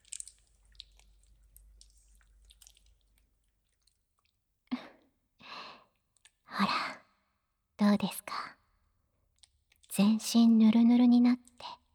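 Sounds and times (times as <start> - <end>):
lotion squishing as it is spread over a body: 0.0 - 4.4
speech: 7.9 - 8.4, 10.0 - 11.7.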